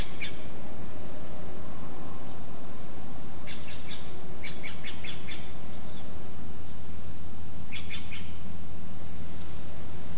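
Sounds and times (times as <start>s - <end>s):
faint scratching in the leaf litter: 0.0s - 10.1s
wind rushing through oak and bay leaves: 0.0s - 10.1s
bright chirps and calls: 2.7s - 6.1s, 7.7s - 9.2s.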